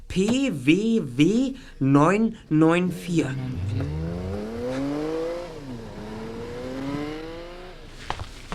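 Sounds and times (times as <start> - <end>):
speech: 0.1 - 4.0
car driving away: 3.0 - 8.5.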